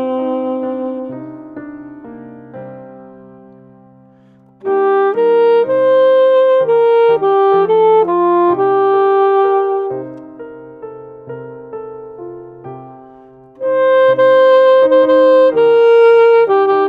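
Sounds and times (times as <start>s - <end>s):
saxophone playing: 0.0s - 2.7s, 4.2s - 11.4s, 13.1s - 16.8s.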